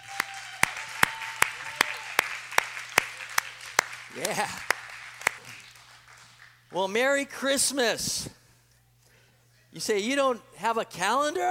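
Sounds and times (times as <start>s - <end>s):
audience clapping in rhythm: 0.0s - 6.9s
speech: 4.2s - 4.8s, 6.7s - 8.4s, 9.8s - 11.4s.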